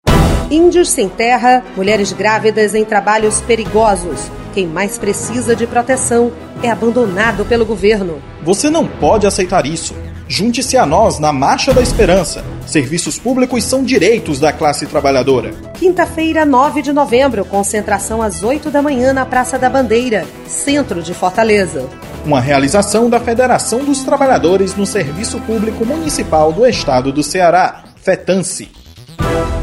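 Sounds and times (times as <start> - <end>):
march music: 0.0 - 29.6.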